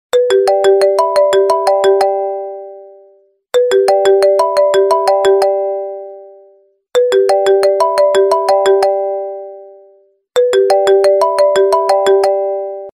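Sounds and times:
Apple iPhone 4G ringtone: 0.1s - 12.9s.

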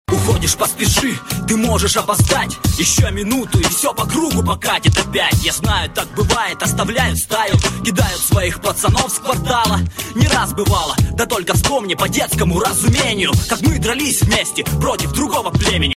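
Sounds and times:
Russian rap ringtone: 0.1s - 15.9s.

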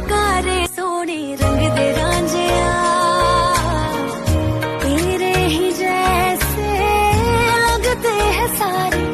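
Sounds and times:
Punjabi love song ringtone: 0.1s - 9.1s.

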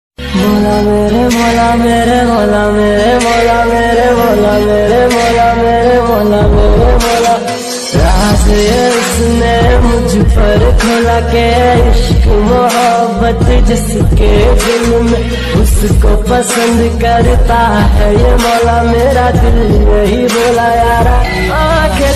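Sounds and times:
romantic instrumental ringtone: 0.2s - 22.1s.

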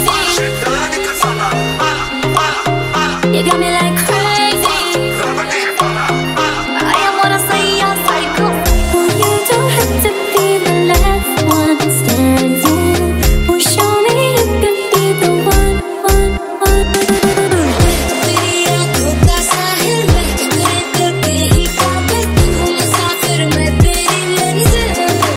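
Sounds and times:
remix song ringtone: 0.0s - 25.3s.

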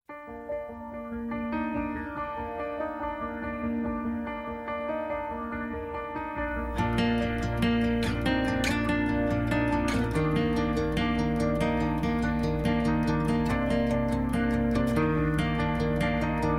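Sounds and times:
background music ringtone: 1.8s - 16.5s.

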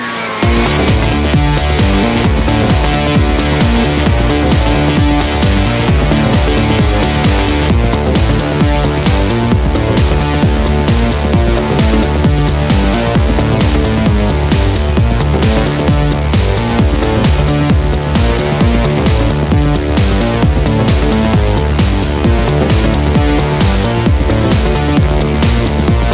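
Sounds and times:
Bollywood ringtone music: 0.0s - 26.1s.

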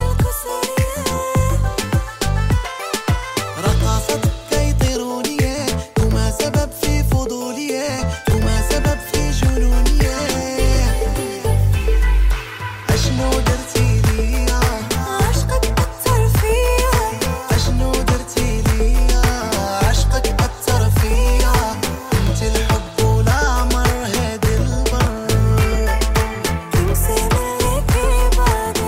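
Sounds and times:
new Arabic remix ringtone: 0.0s - 28.8s.

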